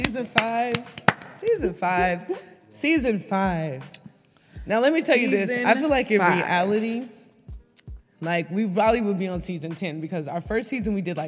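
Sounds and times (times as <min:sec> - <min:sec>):
hand claps: 0:00.0 - 0:01.5
speech: 0:00.1 - 0:04.0, 0:04.7 - 0:07.2, 0:08.2 - 0:11.2.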